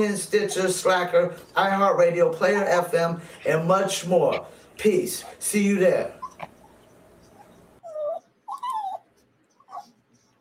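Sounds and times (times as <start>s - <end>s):
speech: 0.0s - 6.5s
puppy whimpering: 6.1s - 10.4s.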